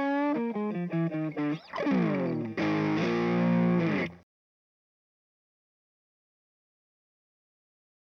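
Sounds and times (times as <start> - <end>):
overdriven guitar through a speaker: 0.0 - 4.2.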